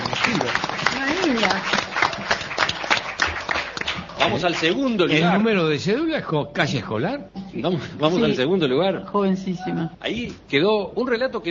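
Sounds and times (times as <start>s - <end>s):
audience applause: 0.0s - 5.2s
speech: 4.4s - 11.5s.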